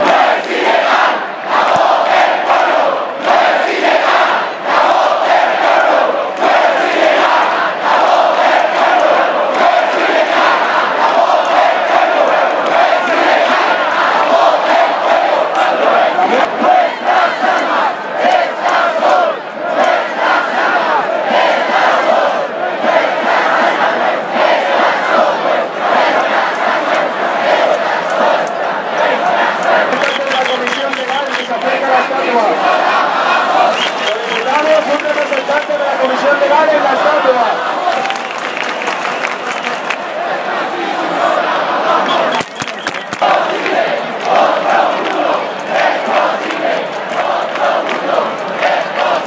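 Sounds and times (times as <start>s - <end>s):
angry townspeople: 0.0s - 49.2s.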